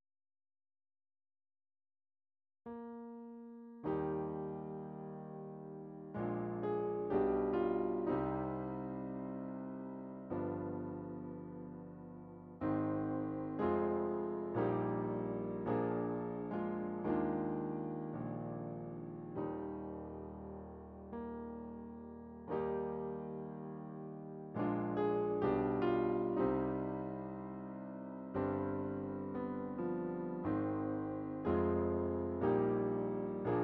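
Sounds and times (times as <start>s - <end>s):
MIDI piano solo: 2.7s - 33.6s.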